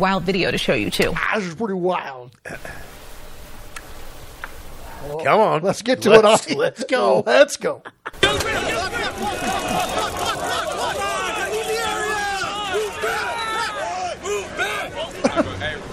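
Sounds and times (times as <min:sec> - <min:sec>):
speech: 0:00.0 - 0:02.9, 0:05.0 - 0:08.5
laughter: 0:02.4 - 0:02.9, 0:06.2 - 0:15.9
massive crowd hubbub on the Balboa Peninsula: 0:08.2 - 0:15.9.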